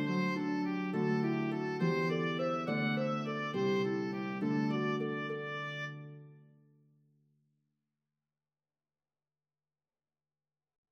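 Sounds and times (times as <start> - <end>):
harp: 0.0 - 6.4
oboe melody in C: 0.0 - 6.4.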